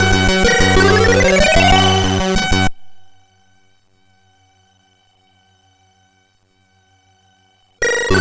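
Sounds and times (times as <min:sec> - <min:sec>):
crack intro chiptune music on MOS6581R4 chip: 0:00.0 - 0:02.8.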